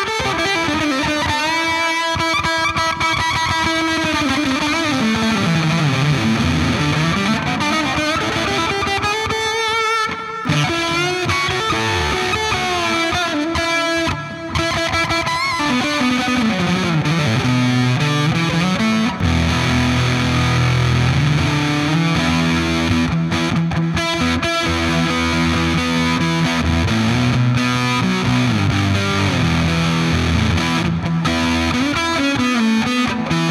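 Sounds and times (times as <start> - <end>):
Sunface fuzz pedal guitar: 0.0 - 33.4.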